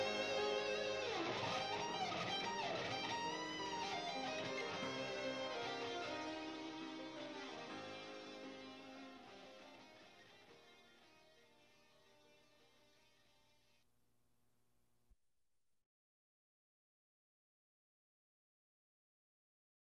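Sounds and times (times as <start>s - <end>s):
instrumental metal music: 0.0s - 9.0s.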